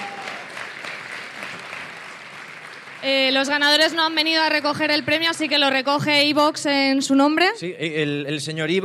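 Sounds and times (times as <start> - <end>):
audience applause: 0.0 - 6.4
speech: 3.0 - 8.8.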